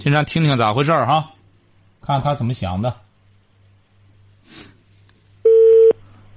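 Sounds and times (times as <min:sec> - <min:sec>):
speech: 0:00.0 - 0:01.4, 0:02.0 - 0:03.0
telephone call connecting tones: 0:05.5 - 0:06.0.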